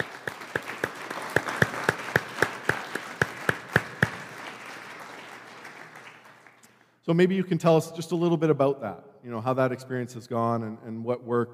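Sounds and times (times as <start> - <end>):
audience applause: 0.0 - 6.7
speech: 7.1 - 11.5.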